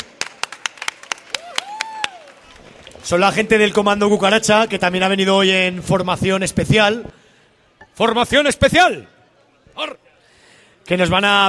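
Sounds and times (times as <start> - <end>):
scattered handclaps from an audience at an outdoor concert in the Plaza de la Magdalena: 0.0 - 3.1
speech: 3.0 - 7.2, 8.0 - 9.1, 9.8 - 10.0, 10.9 - 11.4.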